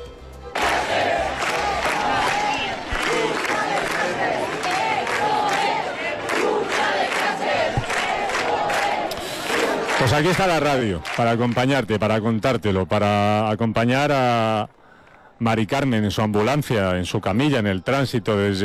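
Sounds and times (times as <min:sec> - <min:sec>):
protest crowd clamor in the street: 0:00.5 - 0:11.5
speech: 0:10.0 - 0:14.8, 0:15.4 - 0:18.6.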